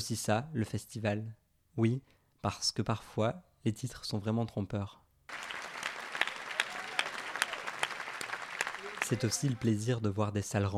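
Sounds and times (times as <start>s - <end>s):
speech: 0.0s - 5.0s, 9.1s - 10.7s
audience applauding in a cinema: 5.3s - 9.9s.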